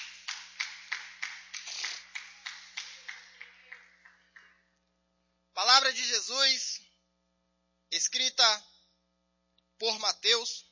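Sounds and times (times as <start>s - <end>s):
audience clapping hands in praise in a steady rhythm: 0.0s - 4.8s
faint hum: 0.0s - 10.6s
speech: 8.0s - 8.7s, 9.8s - 10.6s.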